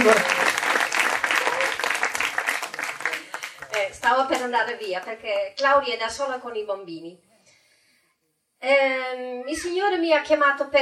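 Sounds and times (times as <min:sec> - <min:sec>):
speech: 0:00.0 - 0:00.4, 0:04.1 - 0:07.3, 0:08.6 - 0:10.7
audience applause: 0:00.0 - 0:05.0.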